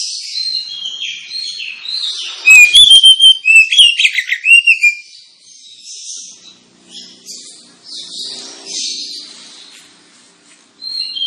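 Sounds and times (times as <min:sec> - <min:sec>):
Oriental magpie-robin singing: 0:00.0 - 0:09.8, 0:10.8 - 0:11.2.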